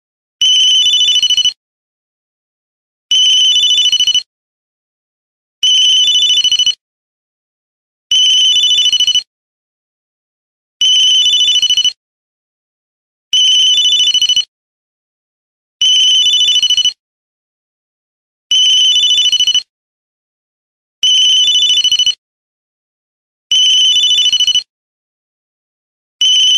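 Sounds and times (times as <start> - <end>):
mobile phone ringtone: 0.4 - 1.6, 3.1 - 4.2, 5.7 - 6.8, 8.3 - 9.2, 10.9 - 12.0, 13.4 - 14.5, 15.8 - 17.0, 18.6 - 19.7, 21.2 - 22.2, 23.7 - 24.6, 26.3 - 26.5.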